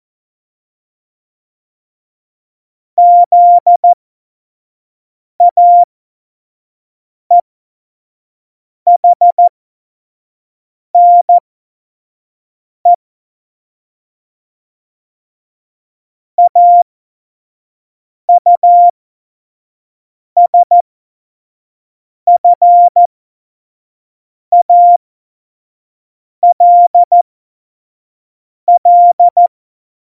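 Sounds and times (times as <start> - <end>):
CW Morse code beeps: 3.0 - 4.0, 5.4 - 5.9, 8.9 - 9.5, 11.0 - 11.4, 16.4 - 16.8, 18.4 - 18.9, 20.4 - 20.8, 22.3 - 23.1, 24.5 - 25.0, 26.4 - 27.2, 28.7 - 29.5.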